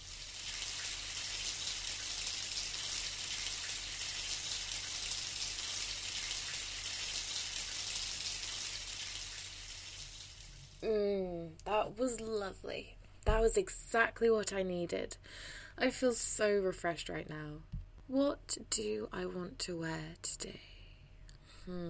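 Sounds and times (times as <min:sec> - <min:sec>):
running shower water: 0:00.0 - 0:10.8
speech: 0:11.8 - 0:20.7, 0:21.6 - 0:21.8.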